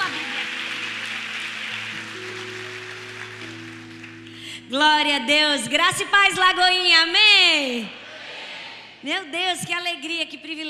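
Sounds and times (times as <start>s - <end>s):
audience applause: 0.0s - 4.4s
soft sustained keyboard chord: 0.0s - 4.7s
speech: 4.7s - 8.0s, 9.0s - 10.6s.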